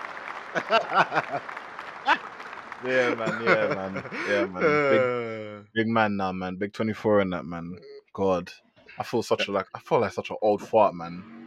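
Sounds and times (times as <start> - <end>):
applause sound effect: 0.0 - 4.7
speech: 0.5 - 1.6, 2.8 - 11.4
laughter: 0.5 - 2.2, 2.8 - 6.2.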